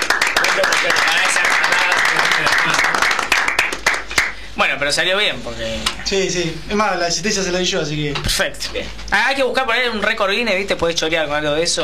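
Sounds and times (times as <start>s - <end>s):
audience applause: 0.0s - 4.4s
speech: 0.6s - 1.4s, 4.6s - 11.8s.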